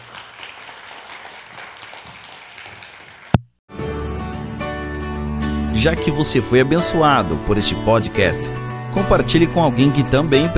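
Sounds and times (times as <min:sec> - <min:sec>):
audience applause: 0:00.0 - 0:03.4
speech: 0:05.8 - 0:10.5.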